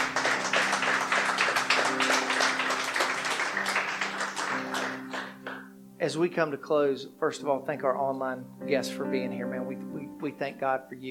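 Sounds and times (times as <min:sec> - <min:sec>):
audience applause: 0:00.0 - 0:05.7
speech: 0:06.1 - 0:11.0.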